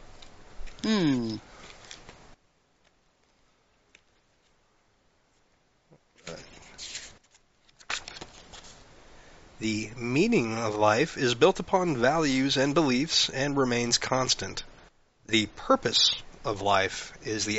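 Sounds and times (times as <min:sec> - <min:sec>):
cards being shuffled and pulled from a deck: 0:00.2 - 0:04.6, 0:06.2 - 0:08.8
speech: 0:00.8 - 0:01.5, 0:09.6 - 0:14.7, 0:15.3 - 0:17.5.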